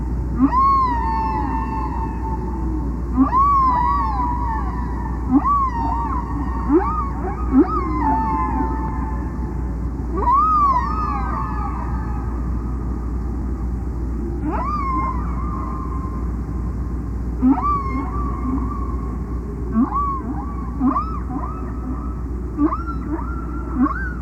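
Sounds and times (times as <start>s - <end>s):
low hum: 0.0s - 24.2s
whale song: 0.0s - 24.2s.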